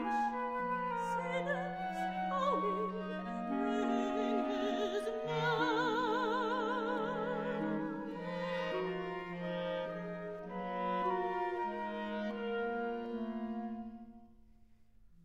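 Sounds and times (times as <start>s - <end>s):
flute: 0.0s - 14.6s
clarinet: 0.0s - 15.2s
viola: 0.0s - 15.2s
person singing: 1.1s - 8.0s.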